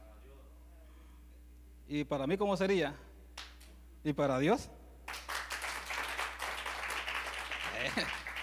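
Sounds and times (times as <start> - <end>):
speech: 1.9 - 3.1, 4.0 - 4.8
church audience applauding: 5.1 - 8.4.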